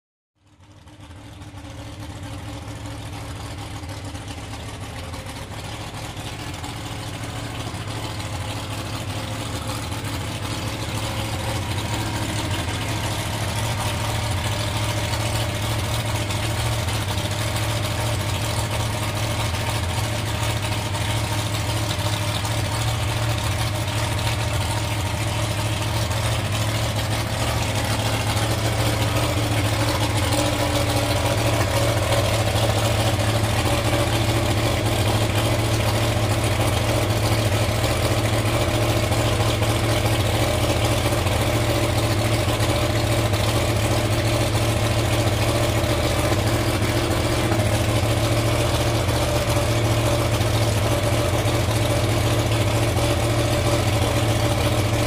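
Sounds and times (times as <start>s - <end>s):
drag boat engine idling and revving: 0.4s - 55.0s.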